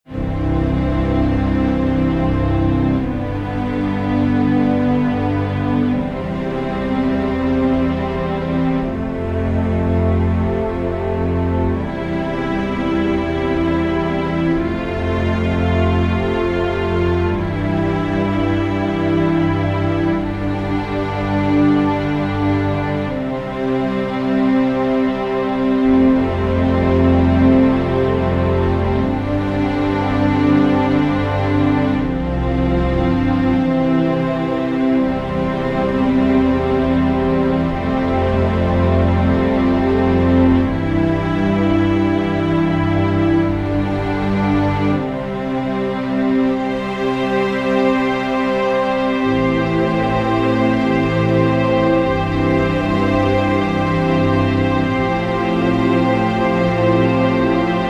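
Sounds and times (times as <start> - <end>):
underscore synth pad: 0.1 - 57.8.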